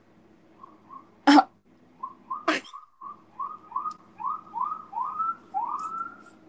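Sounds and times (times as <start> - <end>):
siren passing outside: 2.0 - 6.3.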